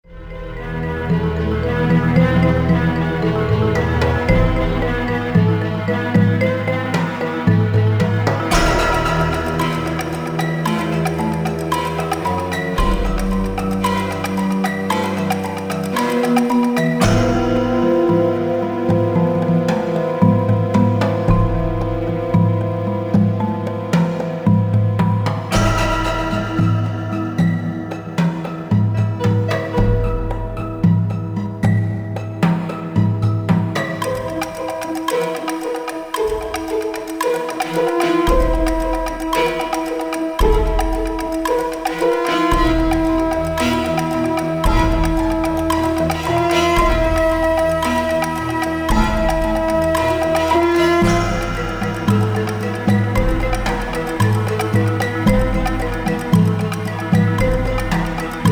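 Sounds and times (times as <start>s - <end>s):
slow music: 0.0s - 58.4s.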